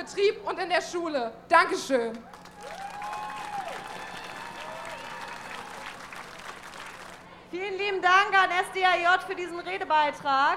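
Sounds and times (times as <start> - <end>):
speech: 0.0 - 2.8, 7.5 - 10.5
rally crowd applauding: 2.3 - 7.3.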